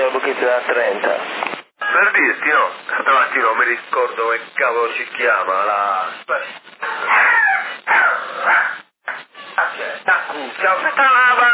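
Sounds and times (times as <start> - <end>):
speech: 0.1 - 7.2, 9.8 - 11.5
dog barking: 6.9 - 8.9.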